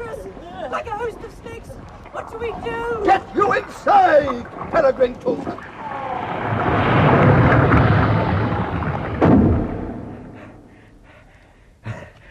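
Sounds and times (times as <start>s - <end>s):
speech: 0.7s - 6.0s
heavy doors slamming shut: 6.7s - 10.6s.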